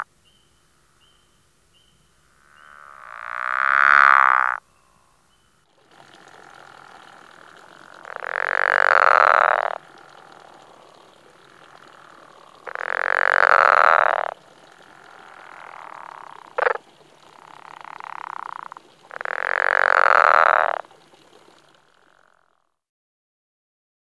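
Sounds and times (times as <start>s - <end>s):
Pickerel frog pulsed snoring croak: 2.5s - 4.6s, 5.8s - 20.9s.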